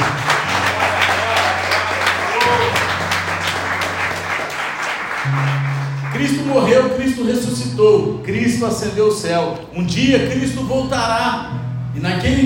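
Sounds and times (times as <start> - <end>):
audience applauding: 0.0 - 6.6
sustained low keyboard chords: 0.0 - 12.4
speech: 6.2 - 12.4.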